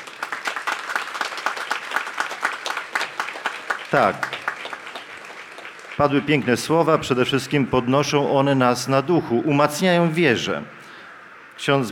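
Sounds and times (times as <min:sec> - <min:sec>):
audience applause: 0:00.0 - 0:08.6
speech: 0:03.9 - 0:04.4, 0:06.0 - 0:10.8, 0:11.6 - 0:11.9.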